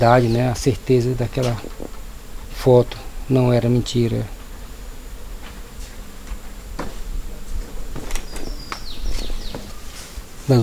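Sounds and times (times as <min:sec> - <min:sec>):
speech: 0:00.0 - 0:01.7, 0:02.6 - 0:04.4, 0:10.5 - 0:10.6
faint high-pitched chirping calls: 0:00.0 - 0:10.6
branches cracking and rustling from a climbing monkey: 0:05.4 - 0:10.3.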